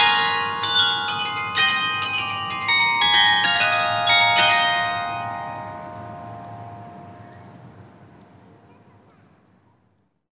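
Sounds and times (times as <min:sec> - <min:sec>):
carillon melody: 0:00.0 - 0:08.2.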